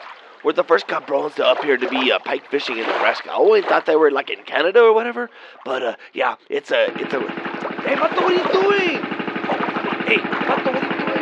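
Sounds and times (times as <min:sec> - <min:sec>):
speech: 0:00.4 - 0:09.1
Mercury outboard boat motor idling: 0:06.8 - 0:11.2.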